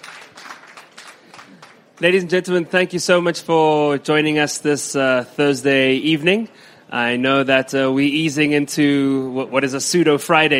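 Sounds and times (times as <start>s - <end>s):
round of applause: 0.0s - 2.0s
speech: 2.0s - 10.5s.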